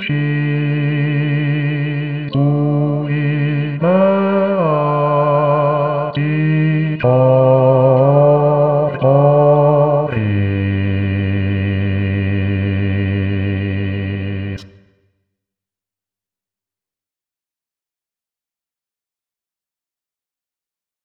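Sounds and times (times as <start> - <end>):
bass voice singing a choral piece: 0.0 - 14.6.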